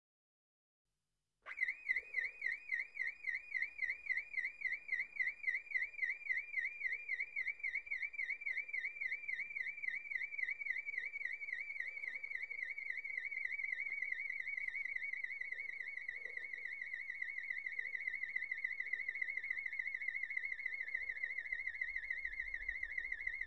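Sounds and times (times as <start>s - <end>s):
car alarm: 1.5s - 23.4s.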